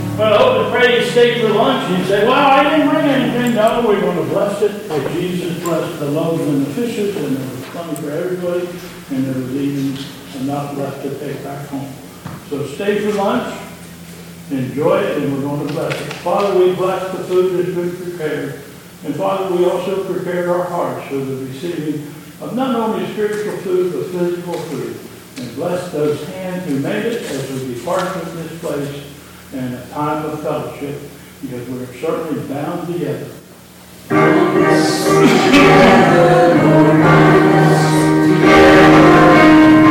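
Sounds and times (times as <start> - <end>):
chorus singing: 0.0 - 9.6, 34.1 - 39.8
person speaking closing words: 0.1 - 13.8, 14.5 - 33.4, 34.1 - 39.8.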